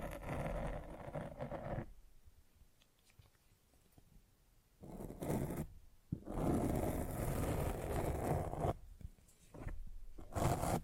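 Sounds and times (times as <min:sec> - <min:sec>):
scratching on a microphone: 0:00.0 - 0:01.9, 0:04.8 - 0:08.8, 0:09.4 - 0:10.8.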